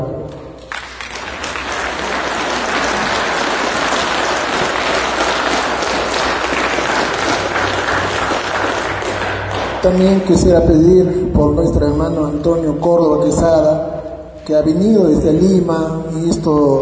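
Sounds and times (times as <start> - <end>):
audience applause: 0.6 - 10.2
speech: 9.8 - 16.7.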